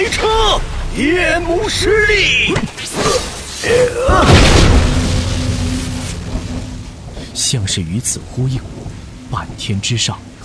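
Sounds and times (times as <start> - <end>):
speech: 0.2 - 4.6, 7.4 - 10.3
thunder strike from lightning: 4.1 - 7.5.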